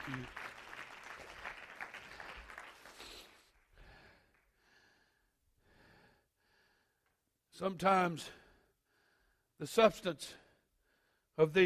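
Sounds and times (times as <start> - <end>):
audience clapping hands: 0.0 - 4.6
speech: 0.1 - 0.5, 7.6 - 8.4, 9.6 - 10.4, 11.4 - 11.6.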